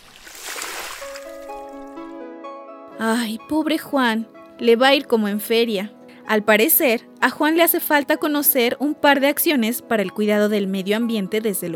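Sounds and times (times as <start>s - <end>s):
garden hose spraying water while washing windows: 0.0s - 1.5s
speech: 3.0s - 11.7s.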